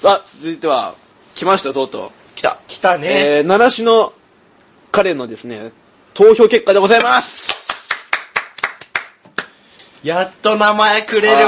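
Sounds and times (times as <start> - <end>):
speech: 0.0 - 4.2, 5.0 - 7.6, 10.0 - 11.4
hand clapping: 7.0 - 9.9.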